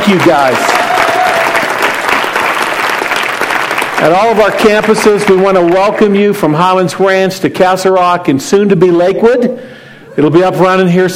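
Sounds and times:
audience applause: 0.0 - 6.4
speech: 0.1 - 0.8, 4.0 - 11.1.

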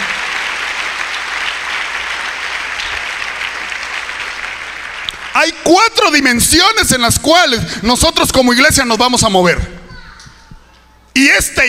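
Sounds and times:
audience applause: 0.0 - 5.8
speech: 5.4 - 9.7, 11.2 - 11.6.

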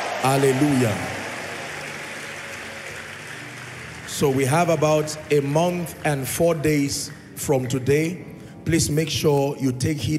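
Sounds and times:
audience clapping: 0.0 - 7.1
speech: 0.2 - 1.2, 4.2 - 10.1.

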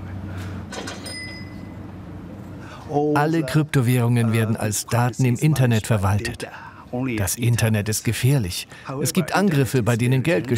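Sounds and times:
low steady hum: 0.0 - 10.5
cash register drawer clunks: 0.7 - 1.7
cash register bell ding signalling a trade: 0.8 - 1.8
speech: 2.9 - 10.5.

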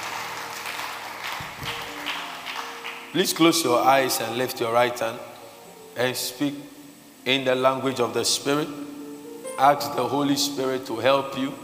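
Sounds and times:
church congregation clapping during a worship service: 0.0 - 4.0
speech: 3.1 - 5.3, 6.0 - 9.0, 9.6 - 11.6.

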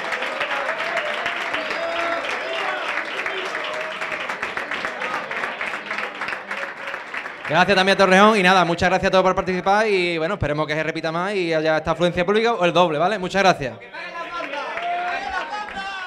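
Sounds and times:
faint voices and cheers in the crowd: 0.0 - 8.8, 13.9 - 16.0
audience applause: 0.0 - 8.9, 14.0 - 16.0
speech: 7.5 - 13.9.

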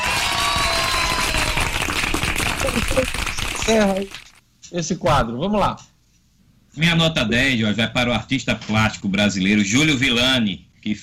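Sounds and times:
applause: 0.0 - 4.4
speech: 3.0 - 5.9, 6.8 - 11.0.

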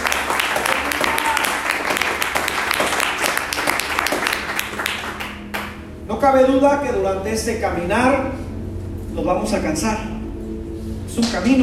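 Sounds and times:
audience applause: 0.0 - 5.8
speech: 6.2 - 8.4, 9.2 - 10.2, 11.2 - 11.6.

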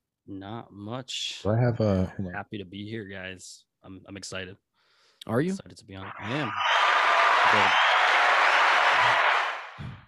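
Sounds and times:
speech: 0.3 - 6.9, 7.5 - 7.9
canned applause: 6.1 - 10.0.

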